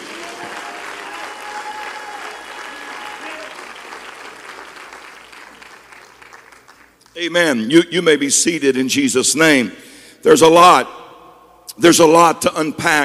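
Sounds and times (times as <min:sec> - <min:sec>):
audience clapping hands: 0:00.0 - 0:07.2
speech: 0:07.2 - 0:11.0, 0:11.8 - 0:13.0.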